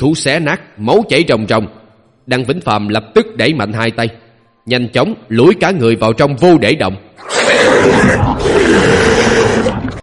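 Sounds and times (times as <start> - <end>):
speech: 0.0 - 9.9
monster beast roaring: 7.2 - 10.0.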